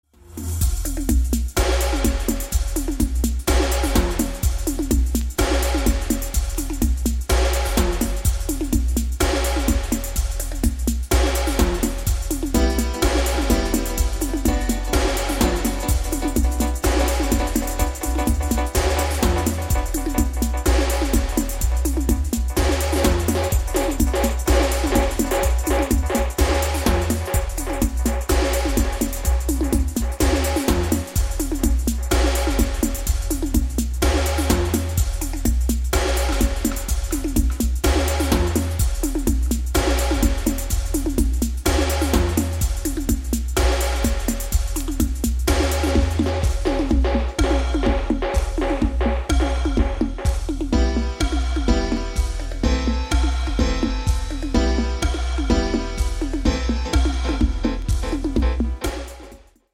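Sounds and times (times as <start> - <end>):
warning dub music: 0.2 - 59.7.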